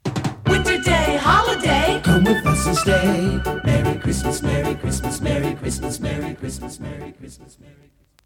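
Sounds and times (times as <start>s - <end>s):
jingle: 0.5s - 6.8s.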